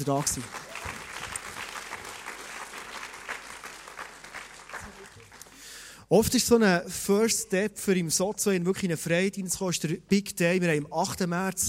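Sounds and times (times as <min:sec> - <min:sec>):
speech: 0:00.0 - 0:00.6, 0:06.1 - 0:11.6
audience applause: 0:00.0 - 0:05.8
faint crowd murmur: 0:04.6 - 0:05.5.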